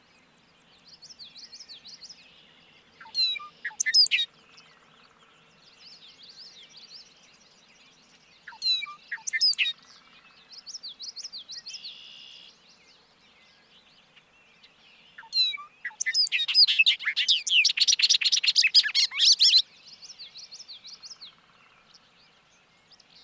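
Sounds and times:
birds chirping: 0:00.0 - 0:23.2
bobolink song: 0:03.0 - 0:04.9, 0:08.4 - 0:12.4, 0:15.2 - 0:21.8.

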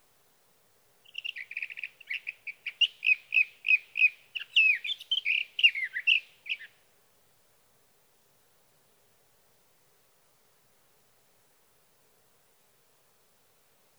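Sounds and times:
sage thrasher singing: 0:01.1 - 0:06.7.

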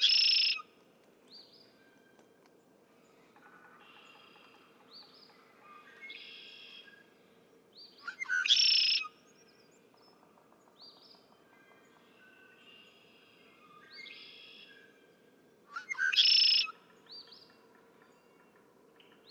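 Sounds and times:
Red-winged Blackbird: 0:00.0 - 0:00.6, 0:08.0 - 0:09.1.

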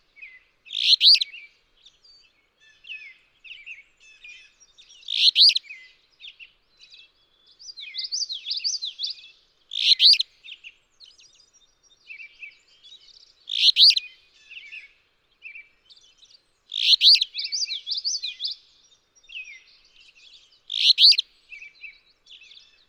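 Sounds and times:
alder flycatcher singing: 0:00.0 - 0:22.8
songbird warbling: 0:00.7 - 0:01.2, 0:05.1 - 0:05.6, 0:09.7 - 0:10.2, 0:13.5 - 0:14.0, 0:16.7 - 0:18.3, 0:20.7 - 0:21.2.

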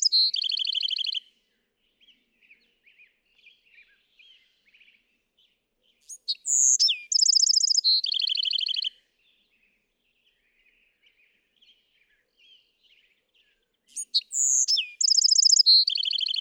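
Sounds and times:
Bewick's wren song: 0:00.0 - 0:01.2, 0:06.0 - 0:09.0, 0:13.9 - 0:16.3.

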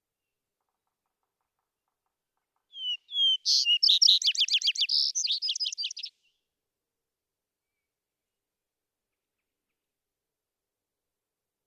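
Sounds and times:
sparrow singing: 0:02.8 - 0:06.2.

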